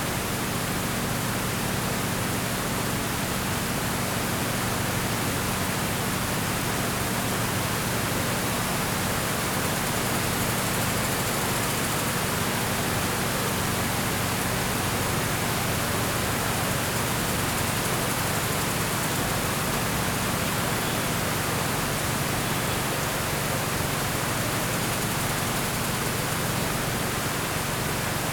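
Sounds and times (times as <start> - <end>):
engine in Bangladesh: 0.0 - 28.3.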